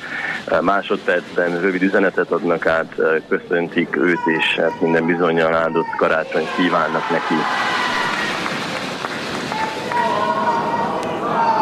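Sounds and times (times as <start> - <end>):
speech: 0.5 - 7.7
audience applauding: 6.4 - 11.5.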